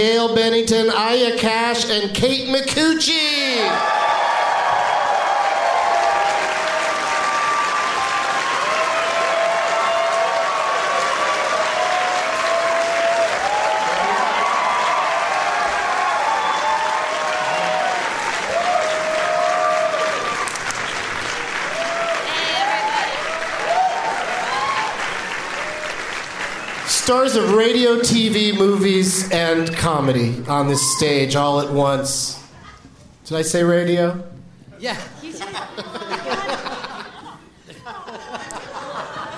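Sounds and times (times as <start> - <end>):
speech: 0.0 - 4.1, 27.1 - 32.4, 33.3 - 35.1
studio audience applause as comedy show guests come on stage: 3.8 - 28.9
laughter: 34.9 - 39.3.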